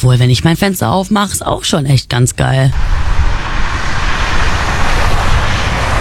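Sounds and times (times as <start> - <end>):
speech: 0.0 - 3.1
street traffic noise through open window: 2.7 - 6.0.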